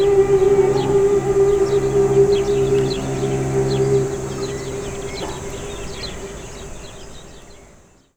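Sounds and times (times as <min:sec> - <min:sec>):
sirens in improvised performance on Saut du moine hill in Jarrie: 0:00.0 - 0:06.4.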